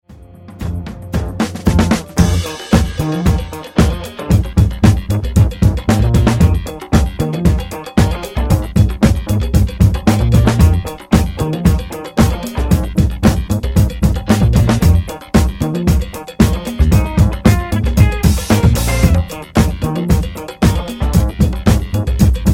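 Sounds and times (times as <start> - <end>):
instrumental music: 0.0 - 22.5.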